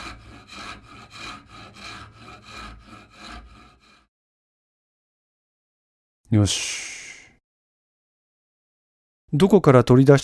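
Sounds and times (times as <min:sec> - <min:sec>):
chiseling a groove into a wooden frame: 0:00.0 - 0:04.1
speech: 0:06.3 - 0:06.9, 0:09.3 - 0:10.2.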